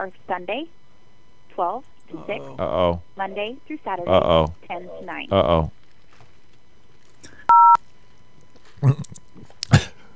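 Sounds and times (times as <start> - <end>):
speech: 0.0 - 0.8, 1.6 - 5.8, 8.8 - 9.1
vocal noises: 2.0 - 5.8, 8.8 - 10.0
telephone keypad tone: 7.5 - 7.8.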